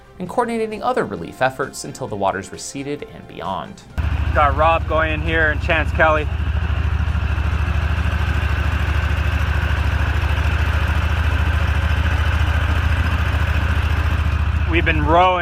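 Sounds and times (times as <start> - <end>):
speech: 0.2 - 6.5, 14.8 - 15.4
motorboat engine running during flood rescue work: 4.0 - 15.4.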